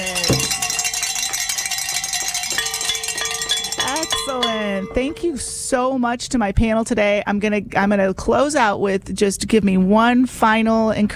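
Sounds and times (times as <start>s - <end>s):
hand bells ringing: 0.0s - 5.7s
speech: 4.3s - 11.1s.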